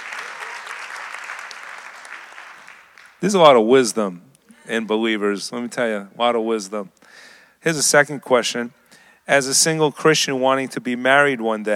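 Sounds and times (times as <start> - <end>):
audience clapping: 0.0 - 3.2
speech: 3.2 - 11.7.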